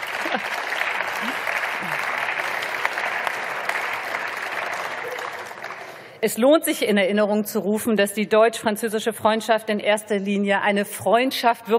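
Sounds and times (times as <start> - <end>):
audience applause: 0.0 - 6.1
speech: 6.2 - 11.7.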